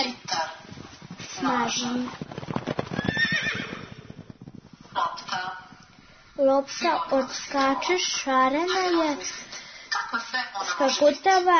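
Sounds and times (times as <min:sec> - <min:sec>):
speech: 0:01.4 - 0:02.2, 0:06.4 - 0:11.5
white horse neighing: 0:02.4 - 0:04.5.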